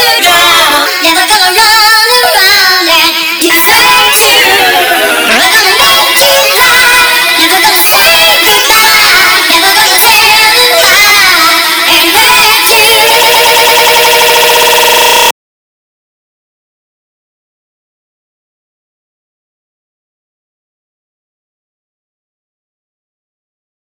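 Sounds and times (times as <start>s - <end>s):
person singing: 0.0s - 15.3s.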